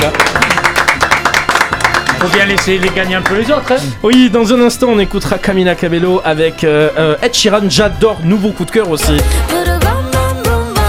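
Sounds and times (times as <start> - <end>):
crowd applause: 0.0 - 3.4
speech: 2.2 - 9.7.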